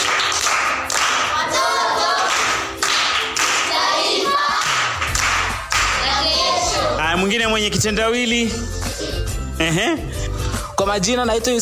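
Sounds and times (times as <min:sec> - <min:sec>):
primary school children clapping a patterned rhythm: 0:00.0 - 0:07.0
children's voices calling out: 0:03.6 - 0:04.9, 0:05.9 - 0:07.0
speech: 0:07.6 - 0:08.8, 0:09.6 - 0:10.2, 0:10.8 - 0:11.5.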